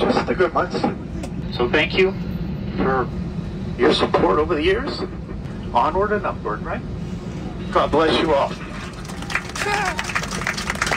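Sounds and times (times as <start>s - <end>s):
speech: 0.2s - 3.2s, 3.8s - 6.9s, 7.7s - 8.6s
smattering of applause from airplane passengers: 8.6s - 10.9s.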